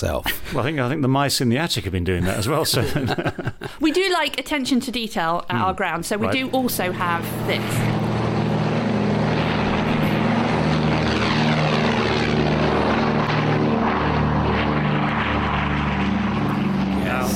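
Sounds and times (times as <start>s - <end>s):
speech: 0.0s - 8.0s
laughter: 2.2s - 4.0s
twin-engined aircraft flying: 6.2s - 17.3s.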